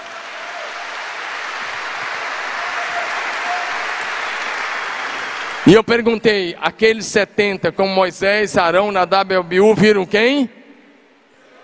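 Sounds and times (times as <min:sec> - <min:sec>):
audience applauding: 0:00.0 - 0:06.0
speech: 0:05.7 - 0:10.6.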